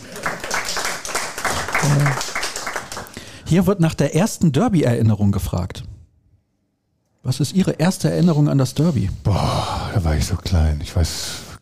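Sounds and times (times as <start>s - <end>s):
applause: 0.0s - 3.3s
speech: 1.8s - 2.3s, 3.5s - 5.9s, 7.2s - 11.4s.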